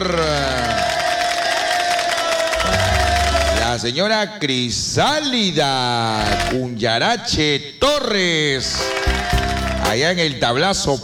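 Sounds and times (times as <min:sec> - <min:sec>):
crowd applauding and cheering: 0:00.0 - 0:04.0, 0:06.2 - 0:06.7, 0:08.6 - 0:10.4
low rumble: 0:02.6 - 0:03.8
speech: 0:03.8 - 0:11.0.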